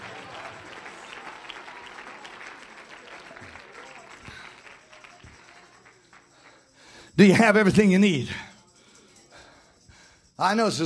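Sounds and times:
audience clapping hands: 0:00.0 - 0:07.7
speech: 0:07.2 - 0:08.5, 0:10.4 - 0:10.8.

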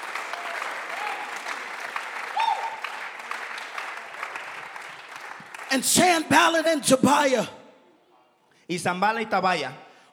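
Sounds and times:
audience applauding: 0:00.0 - 0:06.6
whistle or cheer: 0:02.3 - 0:02.9
speech: 0:05.7 - 0:07.6, 0:08.7 - 0:09.8.

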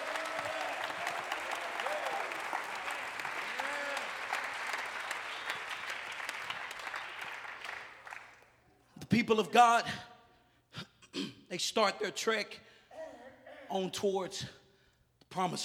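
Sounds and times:
audience clapping hands: 0:00.0 - 0:08.6
speech: 0:09.2 - 0:10.1, 0:11.5 - 0:12.7, 0:13.7 - 0:14.6, 0:15.4 - 0:15.6.

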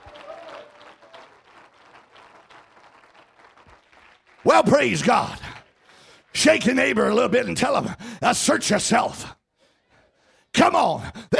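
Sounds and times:
audience clapping hands: 0:00.0 - 0:07.7
speech: 0:04.4 - 0:05.5, 0:06.4 - 0:09.4, 0:10.7 - 0:11.3.

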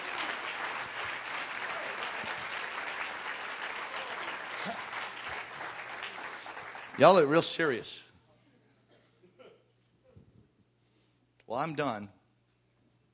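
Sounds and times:
audience clapping hands: 0:00.0 - 0:07.9
speech: 0:07.0 - 0:08.1, 0:11.6 - 0:12.2.

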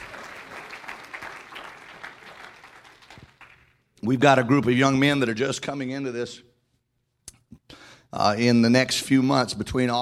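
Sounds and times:
audience clapping hands: 0:00.0 - 0:04.0
speech: 0:04.0 - 0:06.5, 0:08.1 - 0:10.0.

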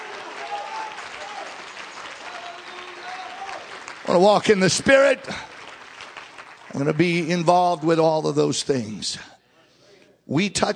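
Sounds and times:
audience clapping hands: 0:00.0 - 0:08.5
speech: 0:04.1 - 0:05.5, 0:06.7 - 0:09.4, 0:10.3 - 0:10.7.

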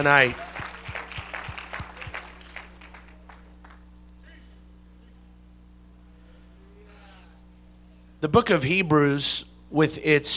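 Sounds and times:
speech: 0:00.0 - 0:00.4, 0:08.2 - 0:10.3
church congregation clapping in praise: 0:00.0 - 0:04.1.

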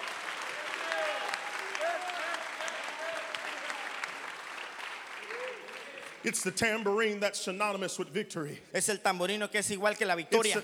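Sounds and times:
audience clapping hands: 0:00.0 - 0:07.0
speech: 0:06.2 - 0:10.6.

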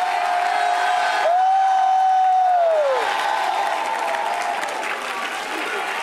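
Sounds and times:
audience clapping: 0:00.0 - 0:06.0
scattered cheers: 0:00.0 - 0:06.0.

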